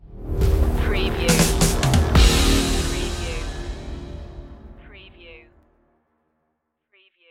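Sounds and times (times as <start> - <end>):
checkpoint stinger: 0.7 - 5.4.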